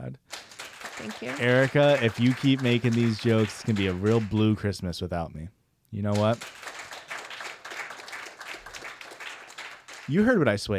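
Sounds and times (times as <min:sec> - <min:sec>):
audience applause: 0:00.3 - 0:04.5, 0:06.2 - 0:10.3
speech: 0:01.0 - 0:06.6, 0:10.1 - 0:10.7.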